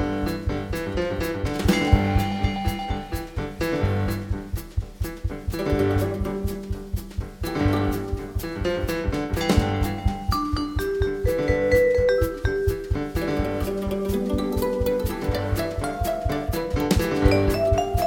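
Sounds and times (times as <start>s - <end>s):
Christmas song: 0.2s - 4.9s, 5.4s - 18.0s.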